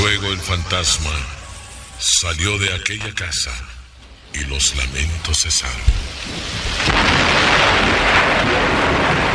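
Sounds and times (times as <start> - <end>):
speech: 0.1 - 1.4, 2.0 - 9.3
thunder clap: 5.7 - 9.3.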